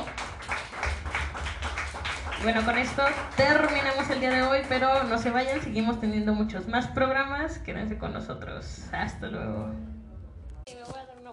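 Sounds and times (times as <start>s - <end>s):
audience clapping: 0.0s - 5.9s
speech: 2.4s - 10.0s.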